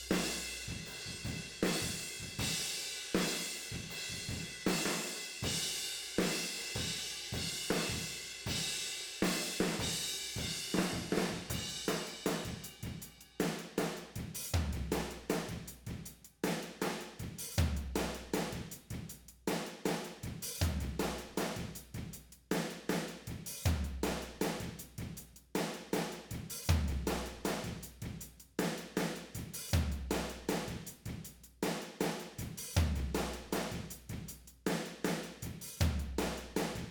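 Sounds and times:
tom drums: 0.0s - 36.8s.

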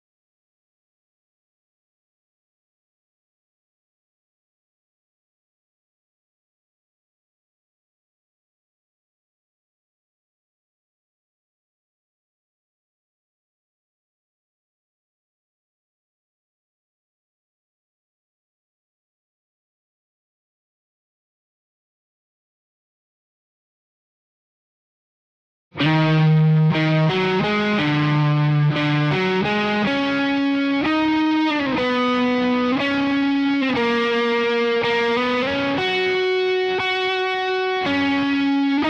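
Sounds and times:
bass guitar: 25.8s - 38.8s.

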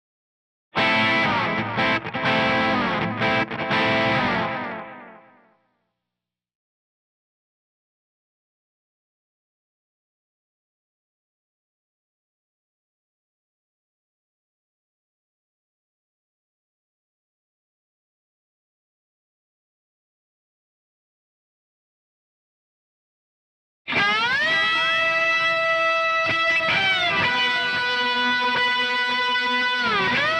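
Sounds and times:
bass guitar: 0.8s - 5.1s, 23.9s - 30.3s.

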